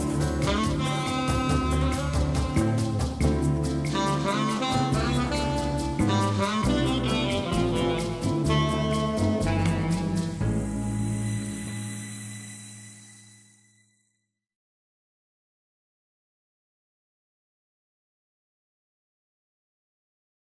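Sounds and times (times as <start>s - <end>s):
mall music: 0.0s - 13.4s.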